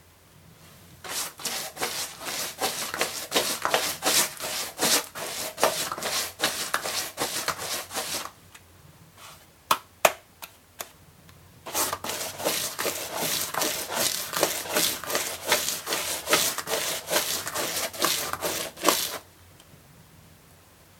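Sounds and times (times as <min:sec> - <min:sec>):
brush painting: 0:01.0 - 0:08.3, 0:11.7 - 0:19.2.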